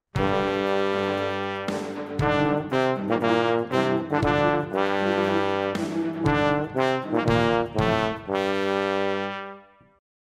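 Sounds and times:
trombone: 0.1s - 10.0s.

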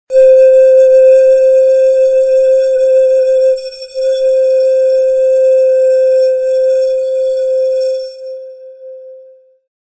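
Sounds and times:
bamboo flute: 0.1s - 9.7s.

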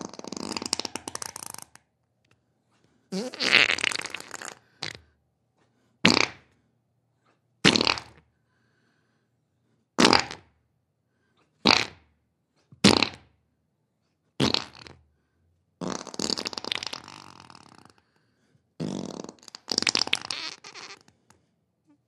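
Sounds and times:
human fart: 0.0s - 1.8s, 3.1s - 5.1s, 6.0s - 6.5s, 7.6s - 8.2s, 10.0s - 10.6s, 11.6s - 12.1s, 12.8s - 13.3s, 14.4s - 15.0s, 15.8s - 18.0s, 18.8s - 21.3s.

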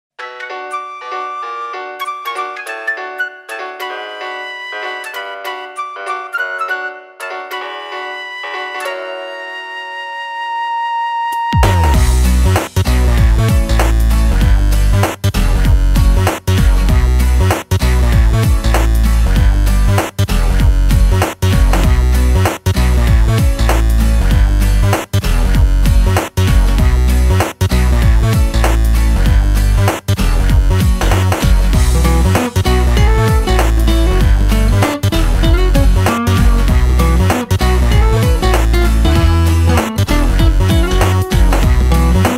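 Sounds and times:
8-bit music: 0.2s - 10.2s, 11.4s - 42.3s.

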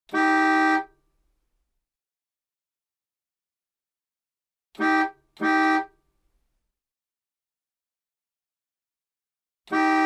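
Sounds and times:
car horn klaxon: 0.1s - 1.0s, 4.8s - 6.0s, 9.7s - 10.0s.

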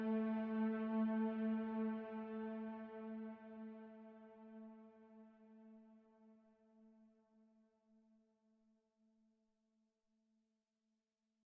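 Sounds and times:
instrumental background music: 0.0s - 4.0s.

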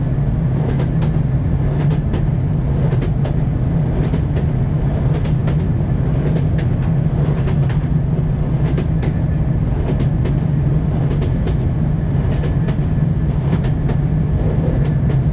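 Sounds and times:
train wheels knocking: 0.0s - 15.3s.

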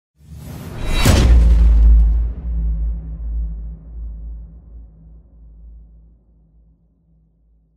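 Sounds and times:
impact: 0.7s - 5.1s.

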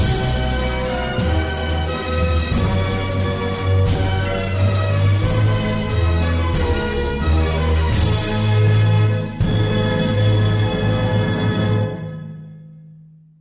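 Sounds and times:
instrumental anthem: 0.0s - 12.8s.

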